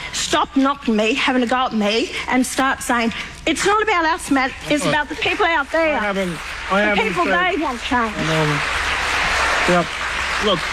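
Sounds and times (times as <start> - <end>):
speech: 0.3 - 8.8, 9.6 - 10.7
crowd applause: 5.0 - 10.7.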